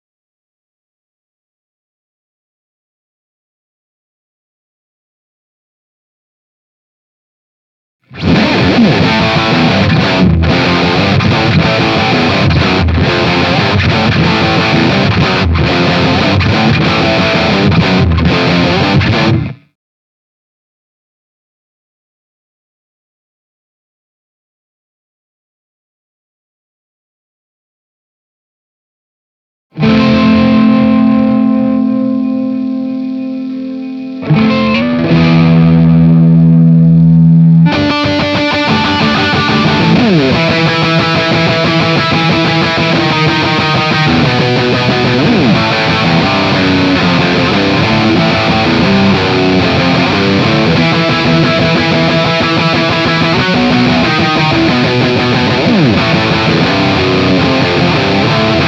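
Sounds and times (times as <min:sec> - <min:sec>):
Gibson Explorer electric guitar into a 4x12 cabinet: 0:08.1 - 0:19.7, 0:29.8 - 0:58.6.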